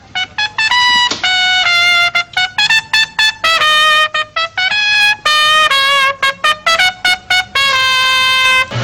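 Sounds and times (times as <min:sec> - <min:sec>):
ringtone: 0:00.2 - 0:08.7.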